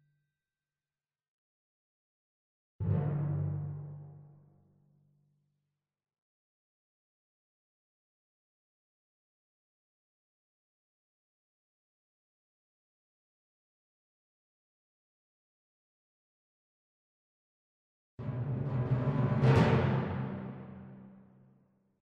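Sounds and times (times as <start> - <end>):
percussion: 2.8 - 5.1, 18.2 - 21.6.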